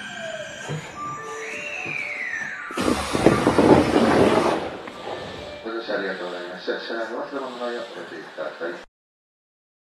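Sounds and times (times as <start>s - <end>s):
Kintetsu 7021 train VVVF inverter motor whine: 0.0s - 8.9s.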